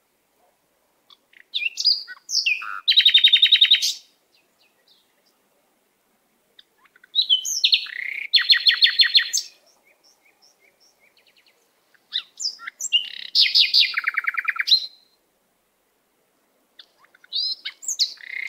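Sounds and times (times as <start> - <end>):
canary singing whistled notes and trills: 1.1 - 5.1, 6.6 - 15.2, 16.8 - 18.4.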